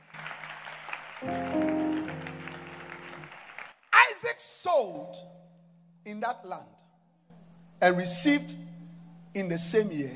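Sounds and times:
audience clapping hands: 0:00.0 - 0:04.3
speech: 0:04.2 - 0:05.4, 0:06.1 - 0:06.8, 0:07.8 - 0:08.7, 0:09.3 - 0:10.1.

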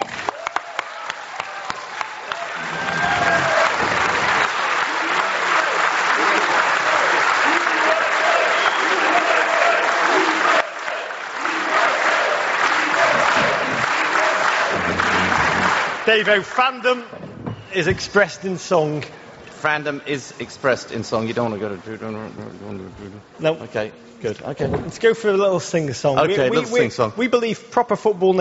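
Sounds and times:
audience applauding: 0:00.0 - 0:17.1
speech: 0:16.1 - 0:17.2, 0:17.8 - 0:28.3.

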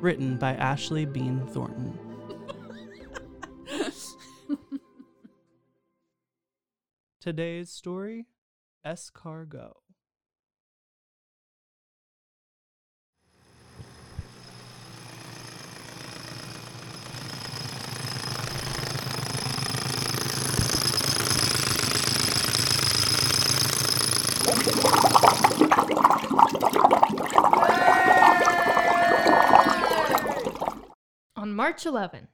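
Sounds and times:
speech: 0:00.0 - 0:02.0, 0:07.2 - 0:09.8, 0:31.4 - 0:32.3
laughter: 0:02.1 - 0:05.3, 0:27.6 - 0:30.5
crew drilling into a rock formation in South Waco: 0:13.8 - 0:30.8
geyser of hot water gushing: 0:17.9 - 0:30.9.

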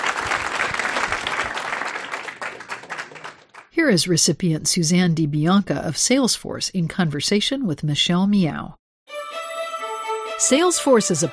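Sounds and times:
audience applause: 0:00.0 - 0:03.7
speech: 0:03.8 - 0:08.8, 0:10.4 - 0:11.3.

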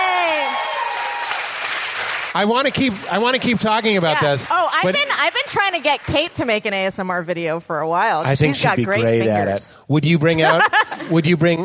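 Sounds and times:
audience applause: 0:00.0 - 0:06.4
speech: 0:02.3 - 0:11.6
laughter: 0:10.3 - 0:11.6.

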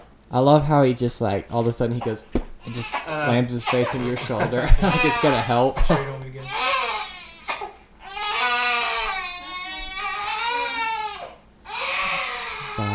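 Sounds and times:
speech: 0:00.3 - 0:06.6
baby crying: 0:02.6 - 0:05.7, 0:06.4 - 0:12.9
laughter: 0:03.9 - 0:06.3.

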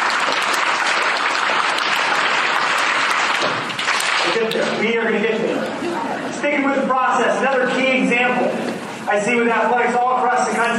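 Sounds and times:
audience applause: 0:00.0 - 0:04.6
speech: 0:04.4 - 0:10.7.

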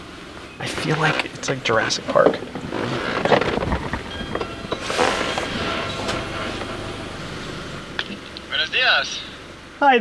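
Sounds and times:
speech: 0:00.6 - 0:02.7, 0:09.0 - 0:09.9
big metal door sliding open: 0:02.6 - 0:08.3.

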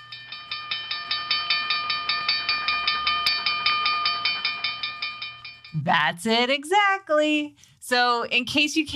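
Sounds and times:
railroad crossing bell dinging: 0:00.0 - 0:05.8
speech: 0:05.7 - 0:08.9.

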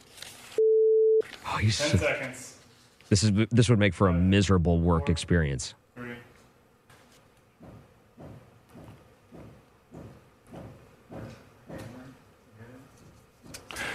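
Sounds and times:
low background hum: 0:00.0 - 0:13.9
speech: 0:01.5 - 0:02.5, 0:03.1 - 0:05.8
hammering: 0:07.6 - 0:12.0.

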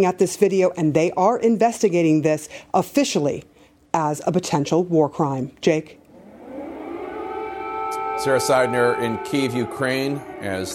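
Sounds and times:
speech: 0:00.0 - 0:06.0, 0:08.2 - 0:10.7
air raid siren wailing: 0:06.1 - 0:10.7.

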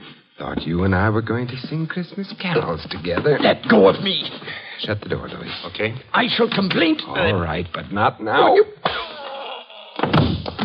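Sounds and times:
steady hissing noise: 0:00.0 - 0:09.0
speech: 0:00.4 - 0:09.1
gun striking a man's head: 0:10.0 - 0:10.6.

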